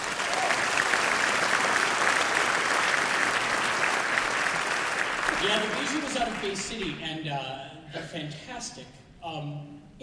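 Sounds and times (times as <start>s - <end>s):
audience applause at a Michigan Christmas concert for an orchestra: 0.0s - 6.9s
speech: 5.4s - 10.0s.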